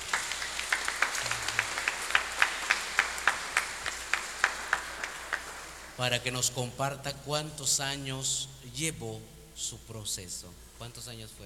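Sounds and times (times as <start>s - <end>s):
small audience applauding: 0.0s - 6.0s
speech: 6.0s - 11.4s.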